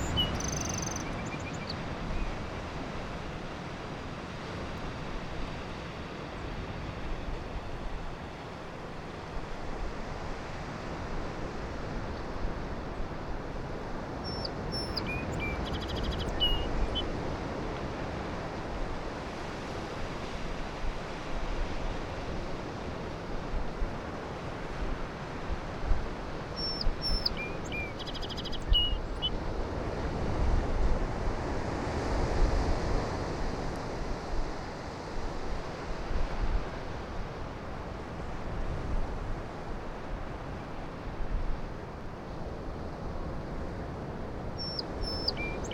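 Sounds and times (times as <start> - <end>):
song sparrow singing: 0.0 - 2.4, 14.2 - 17.1, 26.6 - 29.4, 44.6 - 45.7
surf waves roaring: 0.0 - 15.6, 16.2 - 45.7.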